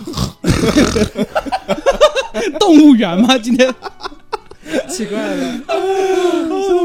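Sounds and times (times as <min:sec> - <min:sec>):
person imitating a pig oinking: 0:00.0 - 0:01.1
laughter: 0:00.4 - 0:06.8
speech: 0:00.6 - 0:01.7, 0:02.4 - 0:03.9, 0:04.9 - 0:06.2.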